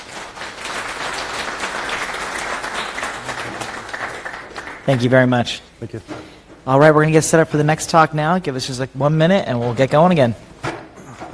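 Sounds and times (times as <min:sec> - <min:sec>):
audience applause: 0:00.0 - 0:05.5
speech: 0:04.9 - 0:10.5.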